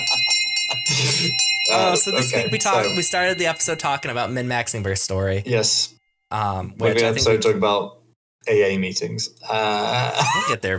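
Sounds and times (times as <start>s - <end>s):
bell being rung: 0.0s - 7.5s
speech: 0.8s - 10.7s.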